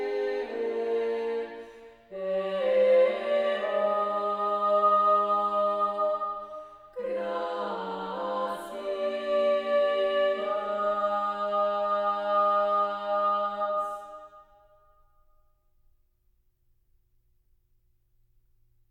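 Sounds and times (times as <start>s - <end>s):
chanting: 0.0s - 14.8s.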